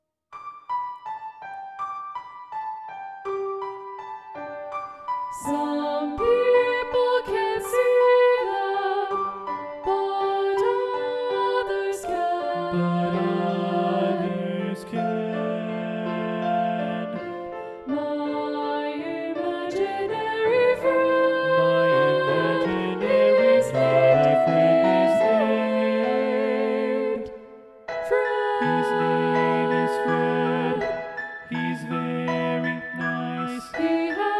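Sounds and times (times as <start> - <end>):
SATB balanced choir voices: 5.3 - 34.3.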